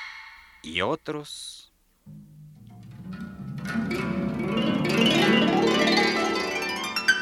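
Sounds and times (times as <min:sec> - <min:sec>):
speech: 0:00.7 - 0:02.3
cascade of notes from a 35-string harp: 0:02.1 - 0:07.2.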